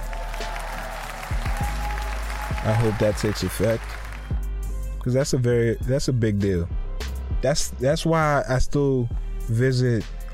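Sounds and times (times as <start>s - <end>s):
applause sound effect: 0.0s - 4.5s
speech: 2.6s - 4.0s, 5.0s - 6.8s, 7.4s - 10.3s.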